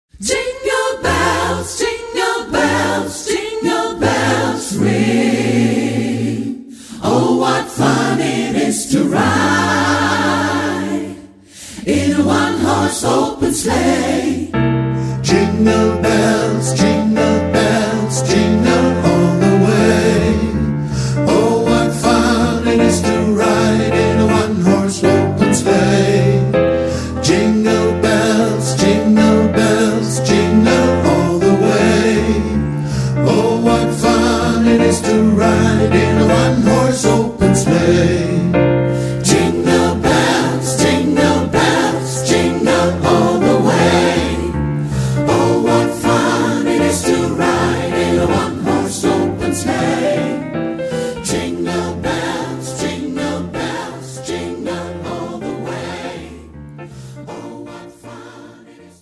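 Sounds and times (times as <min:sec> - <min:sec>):
Christmas song: 0:00.1 - 0:58.9.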